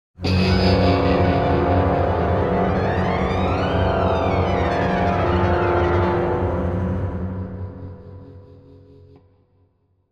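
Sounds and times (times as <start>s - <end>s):
stinger: 0.2s - 8.2s.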